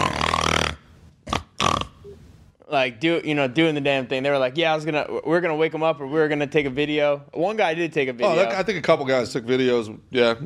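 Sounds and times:
voice imitating loud snoring: 0:00.0 - 0:02.2
speech: 0:02.7 - 0:10.4.

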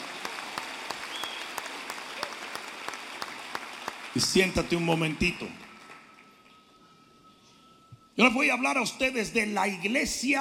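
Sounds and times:
crowd clapping: 0:00.0 - 0:06.8
speech: 0:04.2 - 0:05.6, 0:08.2 - 0:10.3.

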